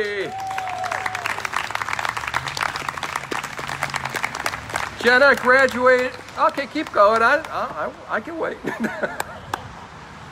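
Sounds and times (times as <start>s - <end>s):
audience applause for college graduates: 0.0s - 7.2s
speech: 5.0s - 9.2s
laughter: 8.6s - 9.6s.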